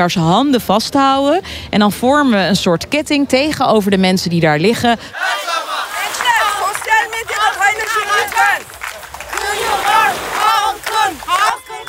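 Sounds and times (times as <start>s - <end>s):
speech: 0.0s - 5.5s
protest crowd chanting and shouting: 5.1s - 11.8s.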